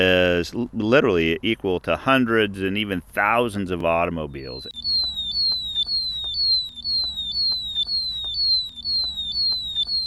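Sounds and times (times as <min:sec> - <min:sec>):
speech: 0:00.0 - 0:04.8
methane gas detector alarm: 0:04.4 - 0:10.0.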